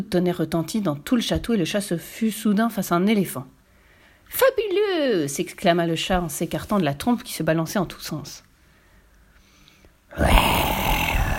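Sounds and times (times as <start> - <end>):
speech: 0.0 - 3.6, 4.3 - 8.5, 10.1 - 10.7
lion roaring: 10.1 - 11.3.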